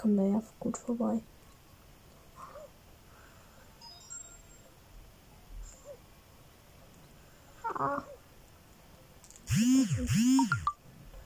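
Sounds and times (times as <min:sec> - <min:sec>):
speech: 0:00.0 - 0:01.4, 0:07.8 - 0:08.1, 0:09.6 - 0:10.7
phone message notification tones and beeps: 0:10.1 - 0:10.8.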